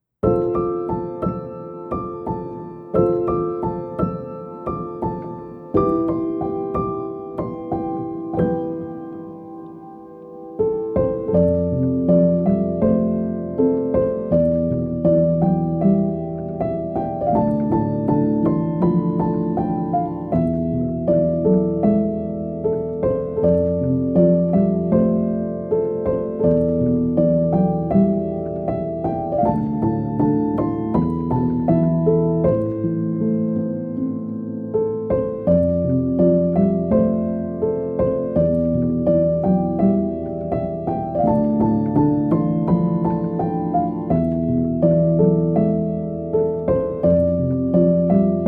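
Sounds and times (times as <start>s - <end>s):
sleep piano music: 0.0s - 48.4s.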